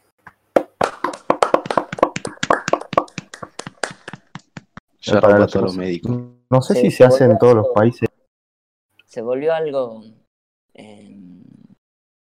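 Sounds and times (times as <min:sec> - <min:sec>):
applause, hands clapping: 0:00.3 - 0:04.8
speech: 0:05.0 - 0:08.1, 0:09.2 - 0:10.2, 0:10.8 - 0:11.2.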